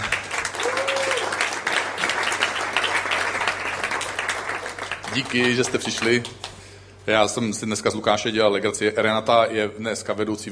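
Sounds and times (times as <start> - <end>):
audience applause: 0.0 - 6.3
speech: 5.2 - 6.4, 7.1 - 10.5.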